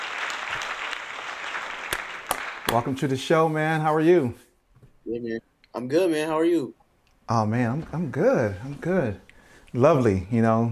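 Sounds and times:
audience applause welcoming a guest on a music interview show: 0:00.0 - 0:03.1
speech: 0:02.7 - 0:04.4, 0:05.1 - 0:10.7.

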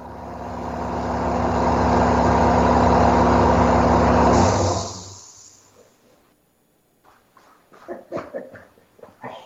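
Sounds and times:
air compressor running in workshop: 0:00.0 - 0:05.7.

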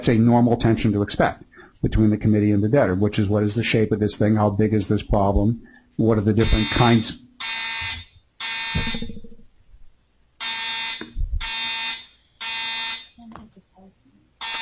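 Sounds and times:
speech: 0:00.0 - 0:07.6
fire alarm sounding for a fire drill: 0:06.4 - 0:09.3, 0:10.4 - 0:13.2, 0:14.4 - 0:14.6.

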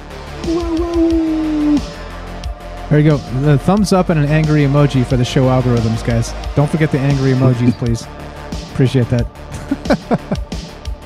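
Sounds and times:
person imitating a wolf howl: 0:00.4 - 0:02.0
speech: 0:00.5 - 0:01.2, 0:02.9 - 0:10.6
laughter: 0:07.4 - 0:08.0, 0:09.6 - 0:10.5.

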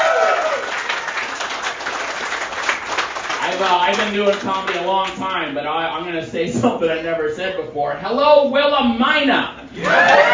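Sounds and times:
audience applause: 0:00.0 - 0:04.7
speech: 0:03.6 - 0:10.3.

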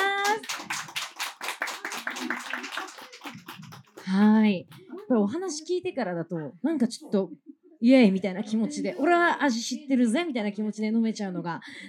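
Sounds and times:
crowd applauding: 0:00.0 - 0:05.0
speech: 0:04.1 - 0:11.8.

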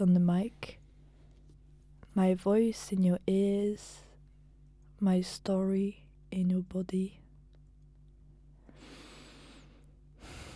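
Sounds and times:
speech: 0:00.0 - 0:00.8, 0:02.2 - 0:04.0, 0:05.0 - 0:07.2
big breath drawn by a person reading a poem aloud: 0:08.7 - 0:10.5.

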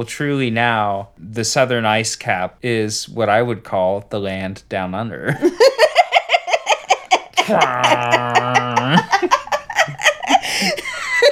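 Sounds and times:
speech: 0:00.0 - 0:05.9, 0:07.5 - 0:08.5
rhythmic choppy laughter: 0:05.3 - 0:11.2
voice imitating a didgeridoo: 0:07.3 - 0:09.3.

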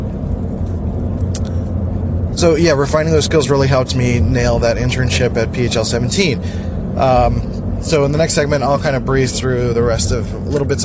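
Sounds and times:
car engine and tyre drone while driving on the road: 0:00.0 - 0:10.8
speech: 0:02.4 - 0:10.8.

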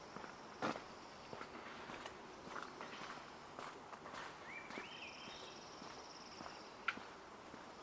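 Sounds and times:
footsteps crunching at Hoyt Arboretum: 0:00.1 - 0:07.7.

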